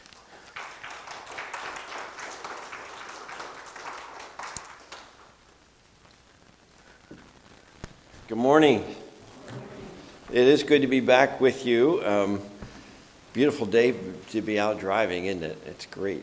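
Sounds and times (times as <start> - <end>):
church congregation applauding to welcome its bishop: 0.0 - 5.6
speech: 8.3 - 9.0, 10.3 - 12.5, 13.4 - 16.2.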